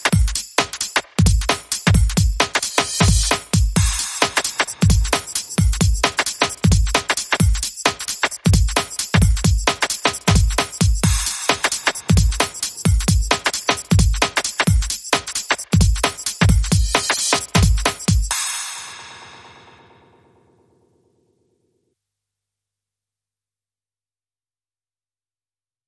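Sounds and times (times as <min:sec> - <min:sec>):
drums: 0:00.0 - 0:20.1.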